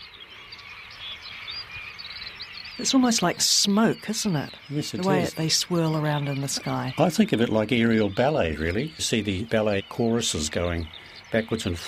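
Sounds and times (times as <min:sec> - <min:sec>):
large flock of birds chirping: 0:00.0 - 0:11.8
speech: 0:02.8 - 0:11.8.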